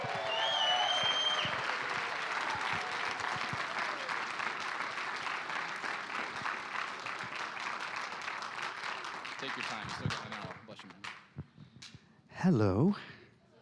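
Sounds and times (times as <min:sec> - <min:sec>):
faint whoops and whistles: 0:00.0 - 0:01.7
audience applause welcoming a speaker: 0:00.0 - 0:11.1
speech: 0:09.6 - 0:11.2, 0:12.4 - 0:13.1.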